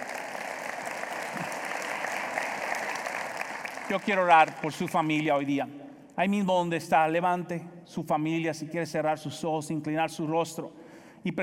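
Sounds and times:
audience applause: 0:00.0 - 0:05.2
speech: 0:03.9 - 0:11.4.

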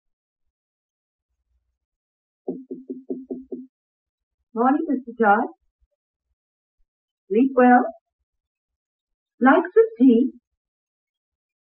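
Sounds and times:
firm knocking on a door: 0:02.5 - 0:03.7
speech: 0:04.6 - 0:05.6, 0:07.3 - 0:08.0, 0:09.4 - 0:10.4.

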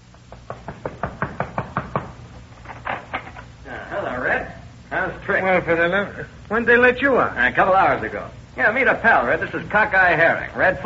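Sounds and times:
knocking on a door: 0:00.3 - 0:02.2
speech: 0:05.3 - 0:10.8.

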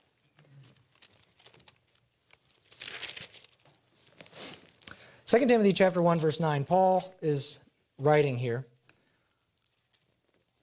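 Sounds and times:
pages of a Bible being turned: 0:00.0 - 0:04.9, 0:08.9 - 0:10.6
speech: 0:05.3 - 0:08.7.

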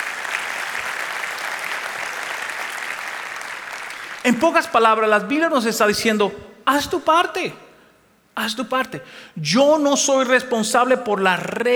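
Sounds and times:
audience applauding: 0:00.0 - 0:04.7
speech: 0:04.2 - 0:07.6, 0:08.4 - 0:11.7.

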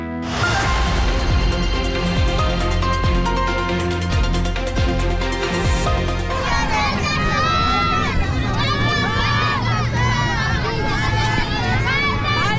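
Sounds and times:
musical jingle: 0:00.2 - 0:07.2
children shouting with joy: 0:06.3 - 0:12.5.

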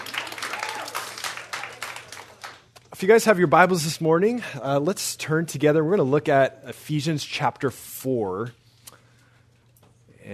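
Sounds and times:
congregation clapping during a middle-school church service: 0:00.0 - 0:02.9
speech: 0:03.0 - 0:08.6.

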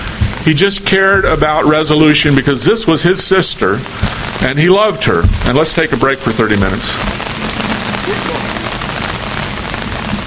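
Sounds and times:
heavy pouring rain: 0:00.0 - 0:10.2
speech: 0:00.4 - 0:07.3, 0:08.1 - 0:08.6.

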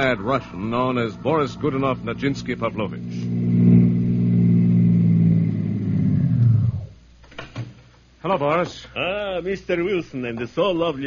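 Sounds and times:
speech: 0:00.0 - 0:03.8, 0:08.3 - 0:11.0
car engine driving: 0:00.0 - 0:07.0.

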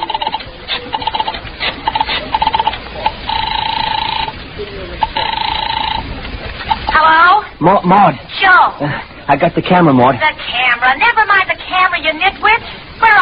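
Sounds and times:
telephone number being dialed: 0:00.0 - 0:04.4, 0:05.0 - 0:07.0
speech: 0:07.6 - 0:13.1.

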